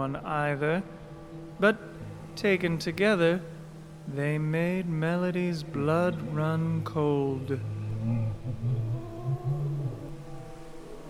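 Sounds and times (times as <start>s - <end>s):
speech: 0.0s - 1.0s, 1.6s - 8.7s
cat yowling: 8.8s - 11.0s.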